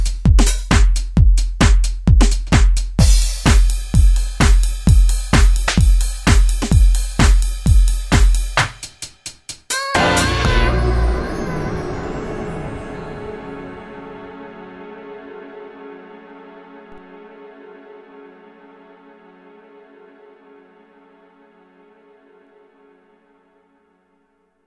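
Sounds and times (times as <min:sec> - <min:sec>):
Euro drum kit: 0:00.0 - 0:10.8.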